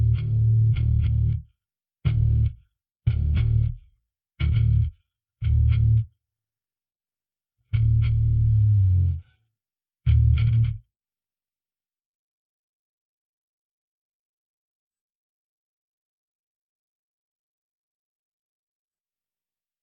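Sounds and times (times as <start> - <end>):
bass: 0.0 - 6.2, 7.7 - 9.4, 10.1 - 10.9.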